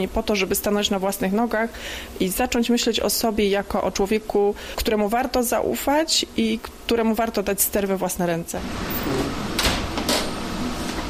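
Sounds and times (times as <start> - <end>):
speech: 0.0 - 9.4
photo developing machine whirring and hissing: 8.6 - 11.0.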